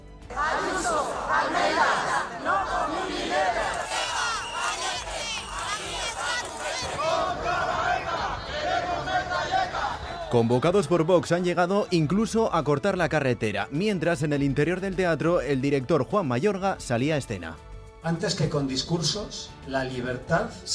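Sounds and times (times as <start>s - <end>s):
protest crowd shouting slogans in Madrid: 0.3s - 11.0s
speech: 10.3s - 20.7s.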